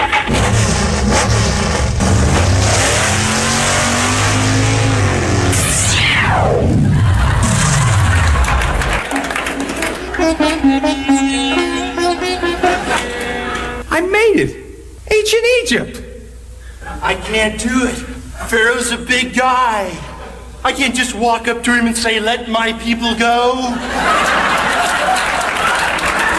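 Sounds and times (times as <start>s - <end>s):
time-machine car engine revving and accelerating toward 88 miles an hour: 0.0s - 9.0s
laughter: 6.7s - 13.8s, 23.7s - 26.3s
speech: 14.4s - 14.6s, 15.3s - 16.1s, 17.3s - 20.0s, 20.6s - 24.5s.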